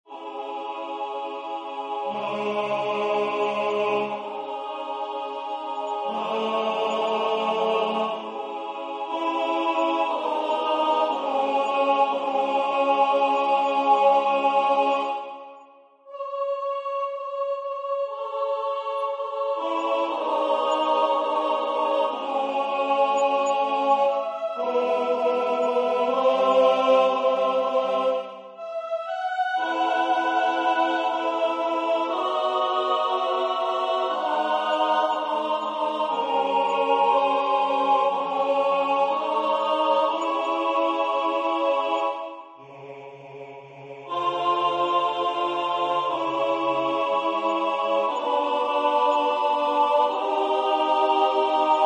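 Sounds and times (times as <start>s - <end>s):
tenor singing: 0.1s - 51.8s.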